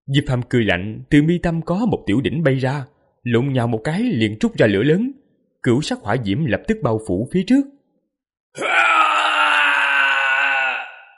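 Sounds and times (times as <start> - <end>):
speech: 0.1 - 7.8, 8.5 - 9.0
ghost's mournful wailing cry: 8.6 - 11.1.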